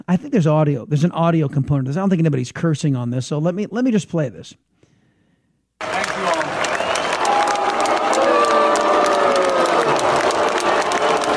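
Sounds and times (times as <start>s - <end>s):
speech: 0.1s - 4.7s
commencement crowd booing: 5.8s - 11.3s
scattered clapping and cheering: 5.8s - 11.3s.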